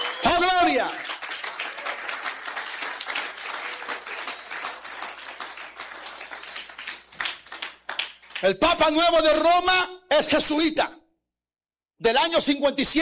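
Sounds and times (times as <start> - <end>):
audience clapping hands: 0.0 - 8.6
speech: 0.7 - 1.1, 8.4 - 11.0, 12.0 - 13.0
high whistle tones: 4.2 - 5.3, 6.0 - 7.2.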